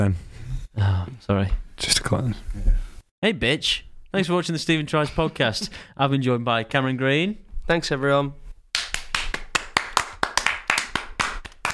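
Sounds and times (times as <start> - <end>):
speech: 0.0 - 8.4
applause: 8.8 - 11.7.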